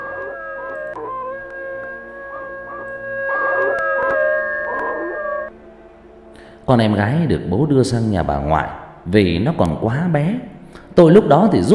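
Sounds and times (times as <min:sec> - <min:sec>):
neighbour's dogs howling: 0:00.0 - 0:05.5
speech: 0:06.7 - 0:11.7.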